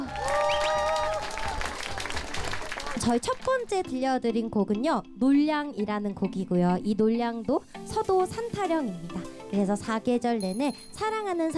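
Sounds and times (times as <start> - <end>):
audience applause: 0.0 - 3.1
speech: 3.0 - 11.5.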